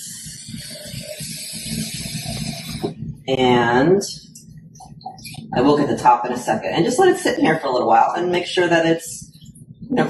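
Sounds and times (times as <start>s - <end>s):
water being added to a jar: 0.0s - 2.9s
speech: 3.3s - 4.2s, 5.5s - 9.2s, 9.9s - 10.0s.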